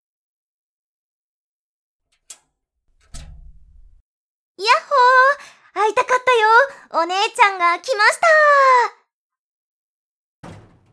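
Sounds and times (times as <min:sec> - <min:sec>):
door being shut: 0:03.0 - 0:04.0, 0:10.4 - 0:10.9
speech: 0:05.8 - 0:09.0.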